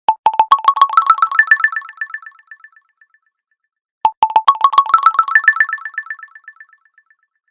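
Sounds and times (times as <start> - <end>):
oscillator ringtone: 0.1 - 2.7, 4.1 - 6.8.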